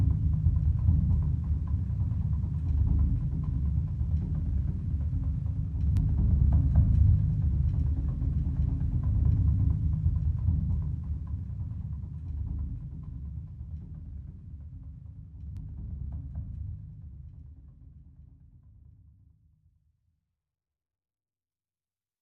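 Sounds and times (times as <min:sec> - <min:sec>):
bass drum: 0:00.0 - 0:14.2.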